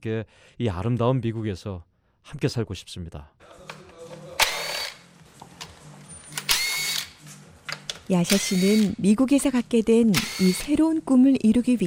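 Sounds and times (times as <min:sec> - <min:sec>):
speech: 0:00.0 - 0:03.7, 0:08.1 - 0:11.8
power drill whirring in an auto repair shop: 0:04.4 - 0:05.0, 0:06.3 - 0:07.2, 0:08.3 - 0:09.0, 0:10.1 - 0:10.8.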